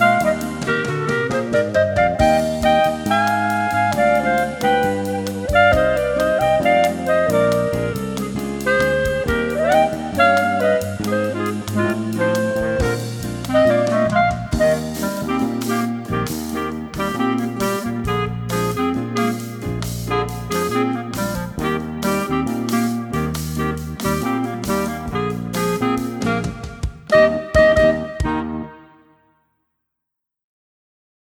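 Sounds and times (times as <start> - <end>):
rhythm section: 0.0 - 28.7
clarinets: 2.2 - 26.4.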